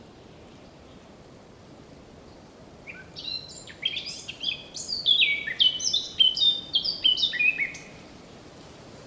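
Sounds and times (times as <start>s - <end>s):
faint background hiss: 0.0s - 9.0s
Eurasian blackcap warbling song: 2.8s - 8.0s.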